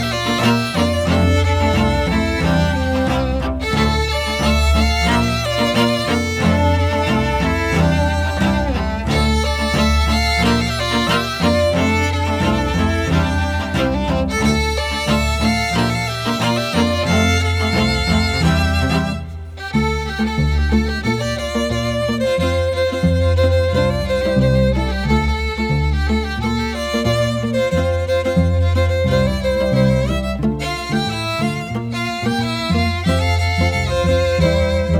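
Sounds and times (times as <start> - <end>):
string quartet: 0.0 - 34.9.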